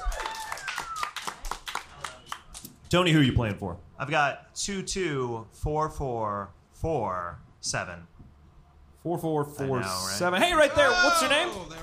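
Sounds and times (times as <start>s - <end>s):
sharp claps: 0.0s - 2.8s
speech: 2.9s - 8.2s, 9.0s - 11.8s.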